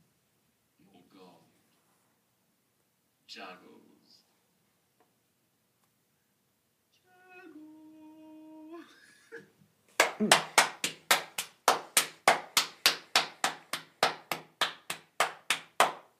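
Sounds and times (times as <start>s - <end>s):
speech: 3.3s - 4.2s, 10.2s - 10.5s
hands clapping: 9.9s - 16.1s.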